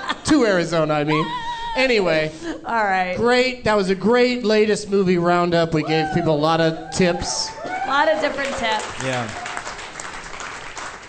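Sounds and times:
speech: 0.3s - 9.4s
audience applause: 7.4s - 11.0s.

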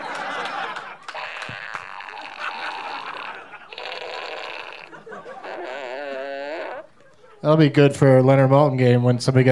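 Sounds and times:
laughter: 0.0s - 7.4s
novelty fart fanfare sound effect: 1.1s - 7.0s
speech: 7.4s - 9.5s.

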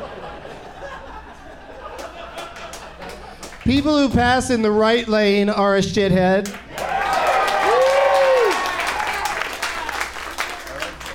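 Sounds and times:
laughter: 0.0s - 3.4s
speech: 3.7s - 6.6s
cheering and applause: 6.6s - 11.1s.

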